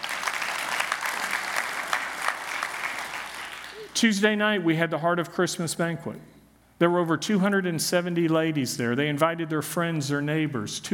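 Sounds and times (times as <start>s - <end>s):
audience applauding: 0.0s - 4.0s
speech: 4.0s - 10.9s.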